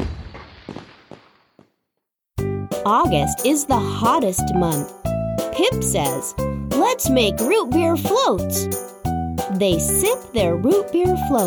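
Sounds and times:
fireworks bursting: 0.0s - 1.6s
speech: 2.8s - 5.0s, 5.6s - 8.9s, 9.6s - 11.4s.

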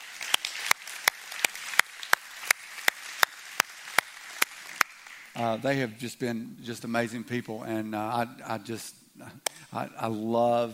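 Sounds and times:
audience round of applause: 0.0s - 5.4s
speech: 5.4s - 10.7s.

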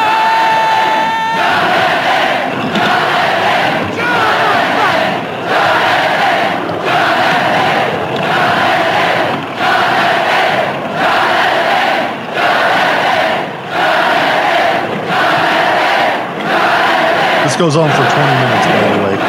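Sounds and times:
laughter: 0.0s - 11.5s, 12.4s - 19.2s
film arena crowd chanting the name Jonathan: 1.2s - 19.2s
speech: 17.6s - 19.0s.

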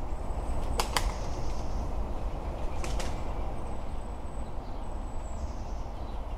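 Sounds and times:
town hum: 0.0s - 6.3s
wood pigeon wing claps in display flight: 0.6s - 1.3s, 2.8s - 3.2s.

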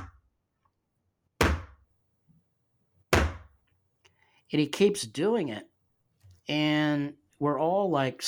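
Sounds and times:
hand hitting a table: 1.4s - 1.8s, 3.2s - 3.6s
speech: 4.5s - 5.7s, 6.5s - 8.2s.

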